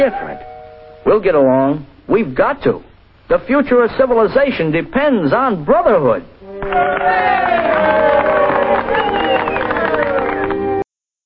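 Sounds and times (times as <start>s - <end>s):
speech: 0.0s - 8.0s
crowd cheering and shouting in film clip: 6.5s - 10.6s.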